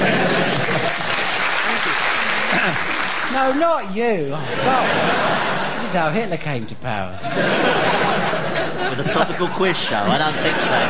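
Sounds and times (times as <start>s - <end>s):
laughter: 0.0s - 3.4s, 4.3s - 6.4s, 7.1s - 10.8s
audience clapping on cue: 0.0s - 3.7s
speech: 3.4s - 10.8s.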